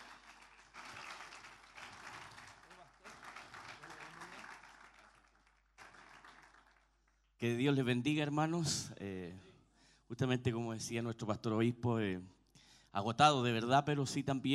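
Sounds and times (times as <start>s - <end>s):
audience applause: 0.0s - 7.0s
speech: 7.4s - 9.5s, 10.1s - 14.5s.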